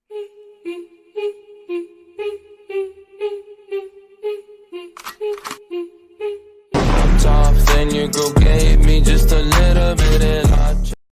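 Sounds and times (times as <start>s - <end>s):
English remix ringtone music: 6.9s - 10.8s.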